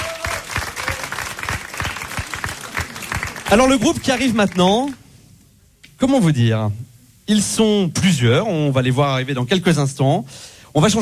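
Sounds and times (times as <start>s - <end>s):
audience applause: 0.0s - 5.0s
speech: 3.5s - 5.0s, 6.0s - 11.0s.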